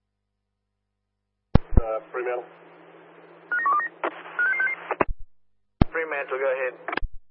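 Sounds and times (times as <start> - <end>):
speech: 2.2 - 2.7, 6.1 - 7.0
emergency phone in a toilet electronic dialing beeps: 3.5 - 4.8.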